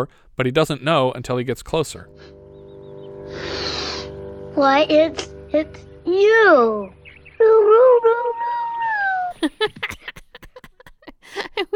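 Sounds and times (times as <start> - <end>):
speech: 0.0 - 2.4, 4.6 - 8.4, 9.4 - 10.0
hound howling on a scent: 7.7 - 9.3
laughter: 9.3 - 11.7.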